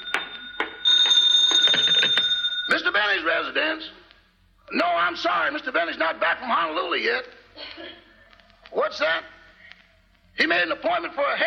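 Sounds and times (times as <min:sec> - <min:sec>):
telephone bell ringing: 0:00.0 - 0:03.2
speech: 0:04.7 - 0:08.0, 0:08.7 - 0:09.3, 0:10.4 - 0:11.4.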